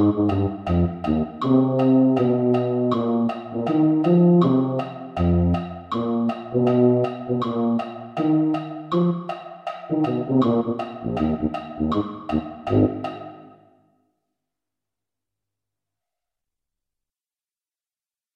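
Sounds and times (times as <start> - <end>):
tuba: 0.0 - 9.3, 9.9 - 13.5.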